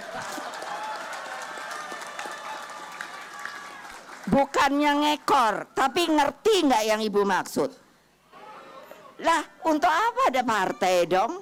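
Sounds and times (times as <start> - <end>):
audience clapping: 0.0 - 5.4
speech: 4.3 - 7.8, 9.2 - 11.4.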